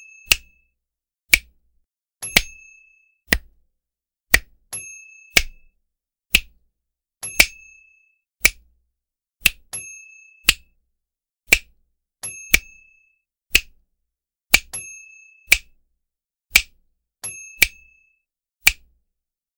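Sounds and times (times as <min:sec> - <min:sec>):
hand snaps: 0:00.3 - 0:00.5, 0:01.3 - 0:01.6, 0:02.4 - 0:02.6, 0:03.3 - 0:03.5, 0:04.3 - 0:04.5, 0:05.4 - 0:05.6, 0:06.3 - 0:06.6, 0:08.4 - 0:08.6, 0:09.4 - 0:09.7, 0:11.5 - 0:11.7, 0:13.5 - 0:13.8, 0:14.5 - 0:14.7, 0:16.5 - 0:16.8, 0:17.6 - 0:17.8, 0:18.6 - 0:18.8.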